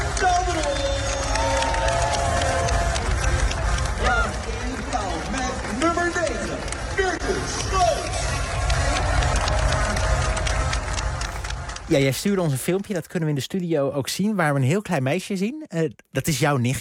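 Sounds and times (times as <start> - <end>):
crowd cheering at an Olympic volleyball match in Rio: 0.0 - 12.5
speech: 11.9 - 16.7.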